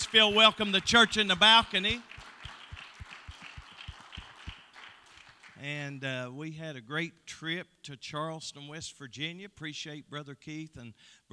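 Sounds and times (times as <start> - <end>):
audience clapping hands in praise: 0.0 - 5.8
speech: 0.1 - 2.1, 5.6 - 11.3.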